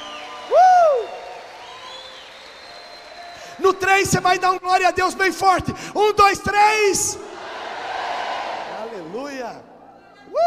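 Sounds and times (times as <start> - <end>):
audience applause: 0.0 - 3.5
faint high whistles or cheers: 0.0 - 4.2
speech: 3.6 - 7.3.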